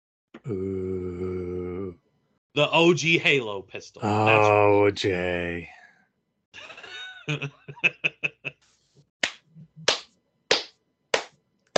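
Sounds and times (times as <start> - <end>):
speech: 0.4 - 0.7, 2.6 - 5.8, 7.3 - 8.2
laughter: 6.6 - 8.5
person slow clapping: 9.2 - 11.7.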